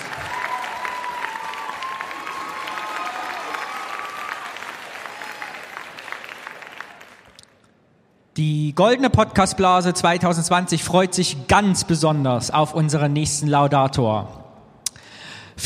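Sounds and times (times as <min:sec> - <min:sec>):
audience applause: 0:00.0 - 0:07.5
speech: 0:08.4 - 0:14.4.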